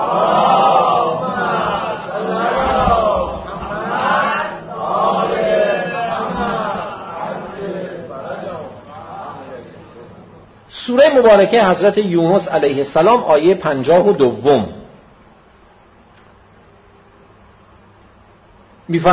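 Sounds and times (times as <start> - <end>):
crowd reciting salawat in unison during a religious sermon: 0.0 - 10.4
speech: 11.2 - 14.8, 18.9 - 19.1.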